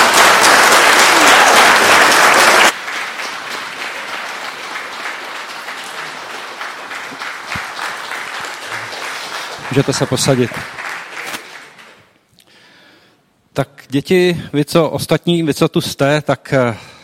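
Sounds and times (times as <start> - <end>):
audience applauding: 0.0 - 12.1
speech: 9.8 - 10.8, 13.6 - 16.9.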